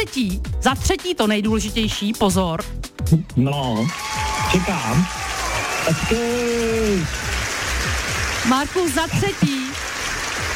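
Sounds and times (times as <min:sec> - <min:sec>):
speech: 0:00.0 - 0:07.4, 0:08.4 - 0:09.6
applause during a radio prize announcement: 0:03.6 - 0:10.5.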